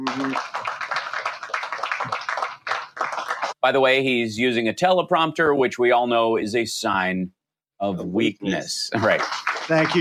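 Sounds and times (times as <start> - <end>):
audience clapping, possibly stock sound effect: 0.0 - 3.6, 9.0 - 9.9
speech: 0.1 - 0.7, 3.6 - 9.9.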